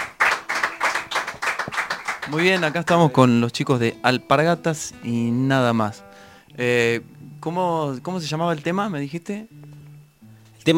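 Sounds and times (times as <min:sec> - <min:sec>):
applause: 0:00.0 - 0:03.2
speech: 0:02.3 - 0:09.6.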